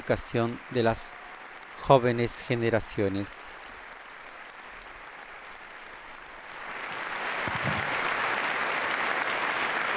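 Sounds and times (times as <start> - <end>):
long applause from a large assembly: 0.0 - 9.9
speech: 0.1 - 1.2, 1.8 - 3.5.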